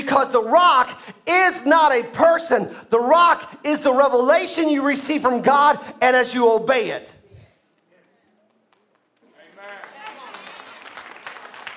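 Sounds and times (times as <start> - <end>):
speech: 0.1 - 7.2
audience applause: 8.8 - 11.7.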